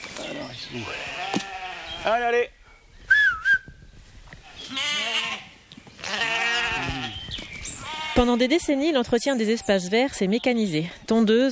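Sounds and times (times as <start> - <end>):
sheep bleating in a pasture: 0.3 - 2.4, 4.4 - 8.6
speech: 0.6 - 1.1, 2.0 - 2.6, 8.2 - 11.5
high whistles: 3.0 - 3.8.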